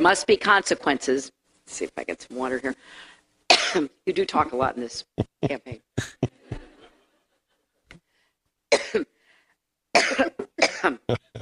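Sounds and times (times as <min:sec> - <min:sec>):
speech: 0:00.0 - 0:03.1, 0:03.7 - 0:06.6, 0:08.9 - 0:09.1, 0:10.0 - 0:11.3
person coughing: 0:03.5 - 0:03.8, 0:05.2 - 0:06.7, 0:08.7 - 0:09.1, 0:10.0 - 0:11.3
laughter: 0:05.3 - 0:07.4, 0:11.1 - 0:11.3.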